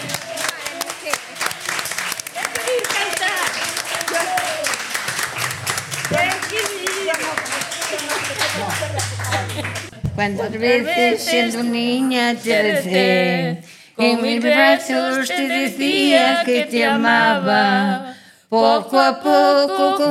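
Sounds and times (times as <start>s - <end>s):
audience applause: 0.0s - 10.0s
speech: 10.2s - 20.0s.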